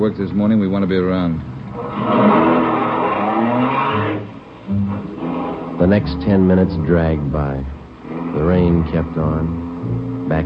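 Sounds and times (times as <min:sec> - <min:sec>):
speech: 0:00.0 - 0:02.6, 0:05.8 - 0:07.8, 0:08.4 - 0:10.4
car engine revving as it pulls away: 0:01.6 - 0:10.4
car tires squealing: 0:01.7 - 0:07.2, 0:07.8 - 0:10.4.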